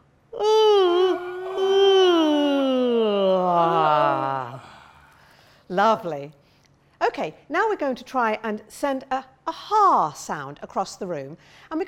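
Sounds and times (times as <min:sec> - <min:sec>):
person yawning open-mouthed: 0:00.4 - 0:05.2
speech: 0:05.8 - 0:06.4, 0:07.2 - 0:11.8.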